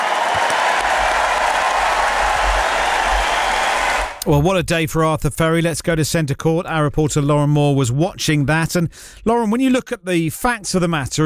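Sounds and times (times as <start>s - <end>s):
crowd clapping: 0.0s - 4.2s
speech: 4.3s - 11.2s.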